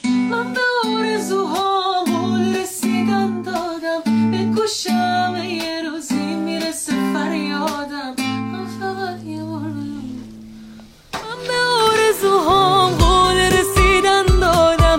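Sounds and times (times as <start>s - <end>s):
guitar: 0.0s - 14.9s.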